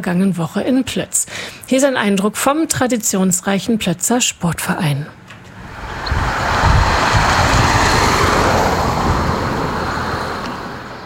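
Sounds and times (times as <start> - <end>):
speech: 0.0 - 5.2
wind blowing outdoors on a village road: 5.5 - 11.0.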